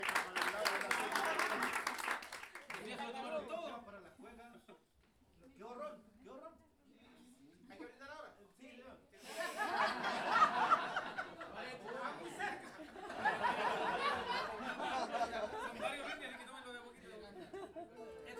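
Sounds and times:
audience applause: 0.0 - 3.2
laughter: 0.0 - 3.4, 9.2 - 18.3.

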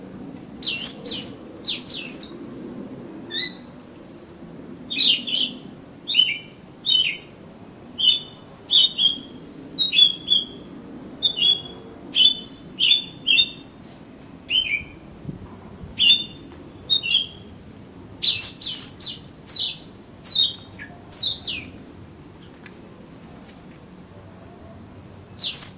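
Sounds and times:
Oriental magpie-robin whistling: 0.6 - 2.4, 3.3 - 3.7, 4.9 - 7.3, 8.0 - 13.6, 14.5 - 15.0, 16.0 - 17.4, 18.2 - 21.8, 25.1 - 25.7.

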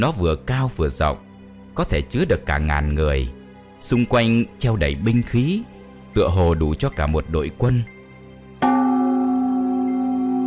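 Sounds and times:
speech: 0.0 - 1.2, 1.8 - 7.9
gong ringing: 8.6 - 10.4.

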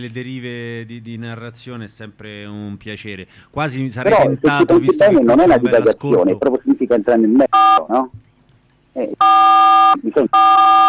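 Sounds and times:
speech: 0.0 - 8.2, 9.0 - 10.8
telephone beeps: 7.5 - 7.9, 9.2 - 10.8.

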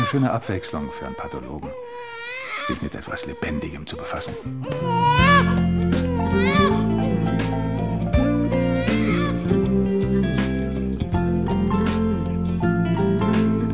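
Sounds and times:
baby girl crying: 0.0 - 10.4
speech: 0.1 - 6.5
steady low droning background: 4.6 - 13.7.

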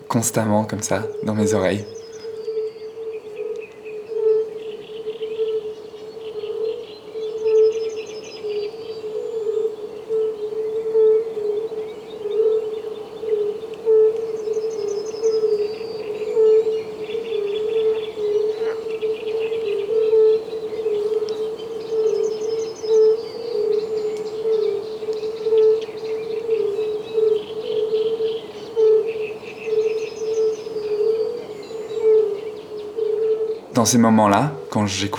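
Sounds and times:
chorus of fire-bellied toads calling: 0.0 - 35.1
faint bird chirps: 0.0 - 35.1
speech: 0.1 - 2.0, 33.8 - 35.1.

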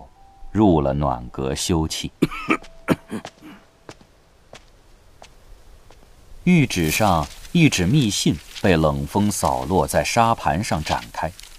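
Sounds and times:
speech: 0.6 - 3.4, 6.5 - 11.4
man coughing heavily: 2.2 - 3.7.

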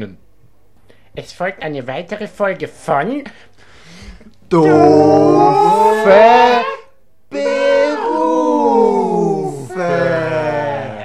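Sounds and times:
speech: 0.0 - 0.2, 1.2 - 3.5, 4.5 - 6.5
dogs howling at a dog show: 4.6 - 11.0.

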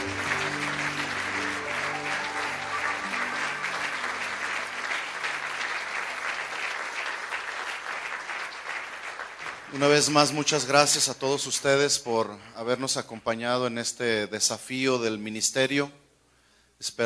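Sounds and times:
audience applause: 0.0 - 10.4
speech: 9.8 - 16.0, 16.8 - 17.0.

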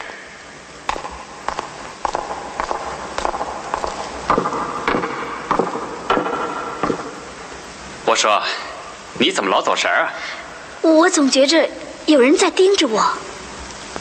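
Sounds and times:
constant soft hiss: 0.0 - 14.0
footsteps of an actress recorded as a film foley take in an old building: 0.9 - 7.3
speech: 8.1 - 13.2.

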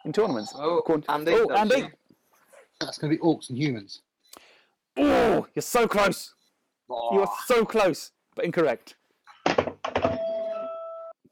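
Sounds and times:
speech: 0.1 - 2.0, 2.8 - 9.0
phone dropped on a surface: 9.5 - 10.3.

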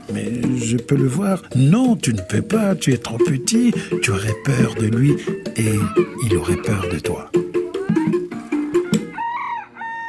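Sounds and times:
speech: 0.1 - 7.5
old rooster with a curled comb clucking and crowing in front of a farmyard: 3.8 - 6.4, 7.4 - 10.0.

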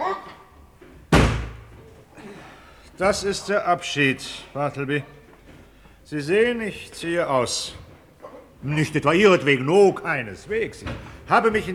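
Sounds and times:
heavy wardrobe tipped over landing with a thud: 1.1 - 1.8
speech: 3.0 - 5.2, 6.1 - 7.8, 8.6 - 11.7.

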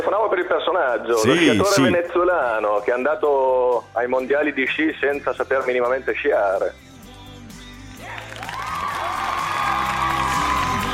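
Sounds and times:
speech: 0.0 - 6.9
crowd applauding: 8.2 - 10.9.

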